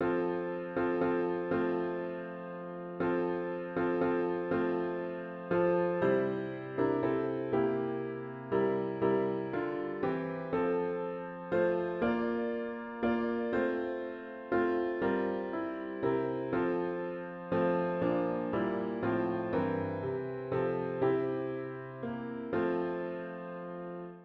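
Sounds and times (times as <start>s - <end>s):
solo piano: 0.0s - 24.2s.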